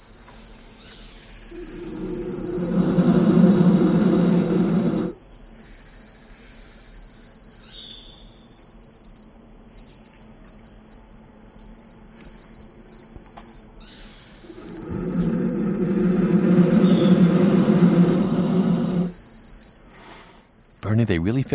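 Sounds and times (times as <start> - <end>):
insects chirring: 0.0 - 21.5
baby black vultures roaring in nest hollow: 1.5 - 5.2, 14.4 - 19.2.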